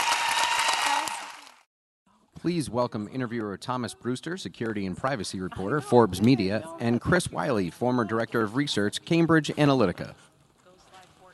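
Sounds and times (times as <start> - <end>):
crowd applause: 0.0 - 1.7
speech: 2.4 - 10.3.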